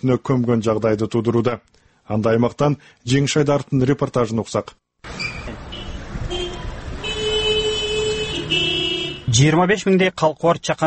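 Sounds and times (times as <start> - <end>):
speech: 0.0 - 4.8, 9.3 - 10.8
car horns honking in a traffic jam in Batken, Kyrgyzstan: 5.1 - 9.4.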